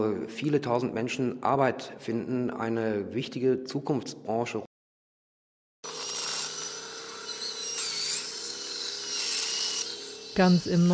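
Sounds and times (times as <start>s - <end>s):
speech: 0.0s - 4.7s, 10.4s - 10.9s
dental drill drilling a molar: 5.8s - 10.9s.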